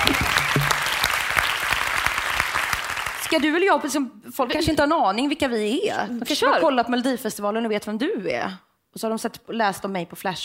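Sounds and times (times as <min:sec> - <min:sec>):
audience applause: 0:00.0 - 0:03.4
speech: 0:03.3 - 0:10.4.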